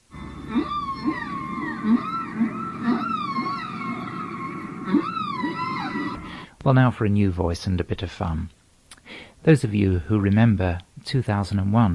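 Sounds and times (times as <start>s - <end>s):
tape cue whistle: 0.2s - 6.4s
speech: 6.6s - 8.6s, 9.4s - 11.9s.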